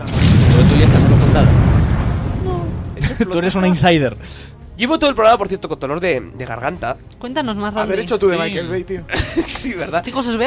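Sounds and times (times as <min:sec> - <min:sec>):
explosion sound effect: 0:00.0 - 0:03.8
speech: 0:00.6 - 0:01.7, 0:03.2 - 0:10.4.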